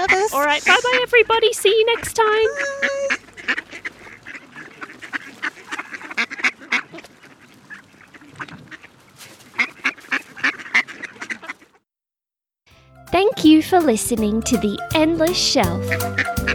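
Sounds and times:
ducks quacking: 0.0s - 11.8s, 15.6s - 16.5s
speech: 0.3s - 3.6s, 13.2s - 16.4s.

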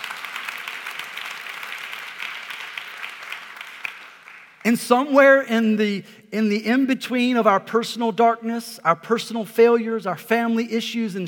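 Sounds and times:
audience applause: 0.0s - 4.6s
speech: 4.7s - 11.2s.

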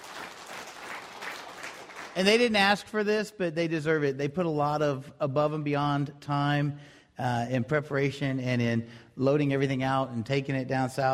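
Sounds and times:
audience applause: 0.0s - 2.5s
speech: 2.2s - 11.1s.

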